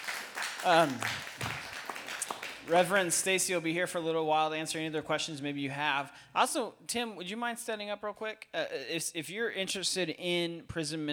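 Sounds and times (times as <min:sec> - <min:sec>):
audience applause: 0:00.0 - 0:03.1
speech: 0:00.6 - 0:01.5, 0:02.6 - 0:11.1.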